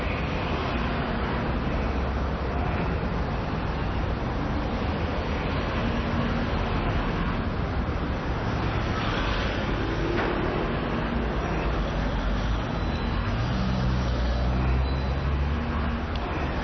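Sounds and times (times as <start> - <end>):
cars driving past on a street: 0.0 - 16.6.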